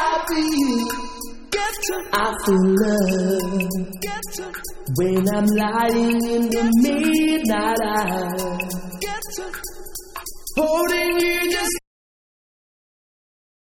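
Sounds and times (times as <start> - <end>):
a cappella singing: 0.0 - 11.8
drum mix: 0.0 - 11.8.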